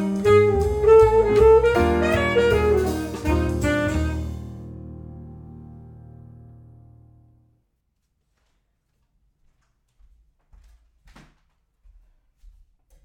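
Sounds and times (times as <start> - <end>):
alto up-tempo swing music: 0.0 - 5.6.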